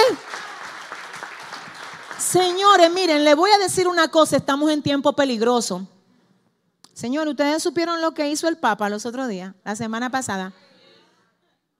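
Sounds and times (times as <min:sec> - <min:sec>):
audience applause: 0:00.0 - 0:02.4
speech: 0:02.3 - 0:06.0, 0:07.0 - 0:10.7.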